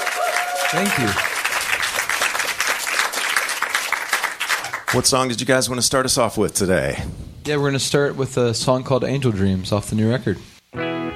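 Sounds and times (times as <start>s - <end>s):
audience applause welcoming a band: 0.0s - 5.0s
speech: 0.7s - 1.3s, 4.9s - 10.8s.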